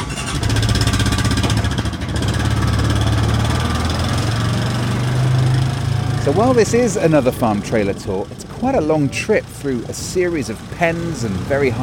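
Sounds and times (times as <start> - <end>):
farm quad bike engine starting and running: 0.0 - 11.8
speech: 6.3 - 11.8.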